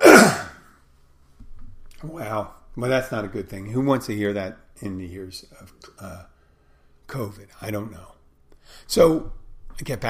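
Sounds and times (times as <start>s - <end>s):
loud raspy throat clearing: 0.0s - 0.6s
speech: 2.0s - 6.3s, 7.1s - 10.0s.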